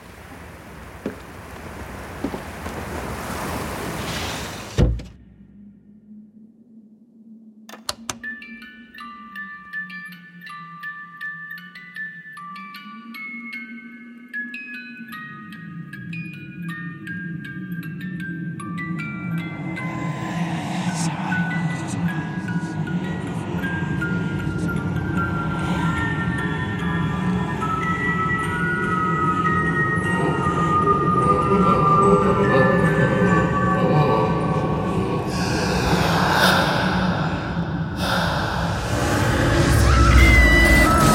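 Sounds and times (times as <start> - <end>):
low wavering drone: 15.0 - 41.1
hissing rush: 35.4 - 41.1
rough dense roar with sharp bursts: 38.0 - 41.1.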